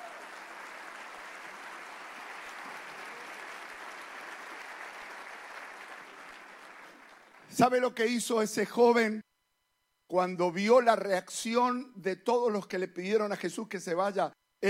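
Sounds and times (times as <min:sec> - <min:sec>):
audience applause: 0:00.0 - 0:07.5
speech: 0:07.6 - 0:09.2, 0:10.1 - 0:14.6.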